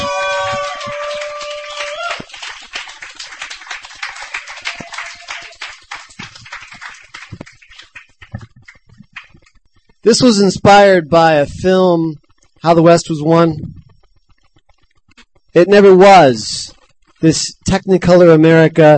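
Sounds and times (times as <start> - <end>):
audience applause welcoming a reader to the stage: 0.0 - 9.5
speech: 10.1 - 13.8, 15.6 - 18.9.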